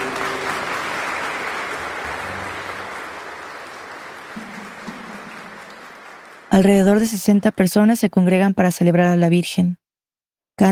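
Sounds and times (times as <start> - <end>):
audience applause: 0.0 - 7.1
speech: 6.6 - 9.8.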